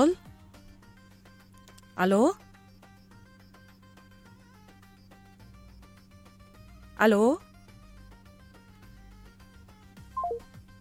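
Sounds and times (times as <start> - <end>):
speech: 0.0 - 0.2, 2.0 - 2.4, 7.0 - 7.5
telephone line beeps after a dropped call: 10.2 - 10.4.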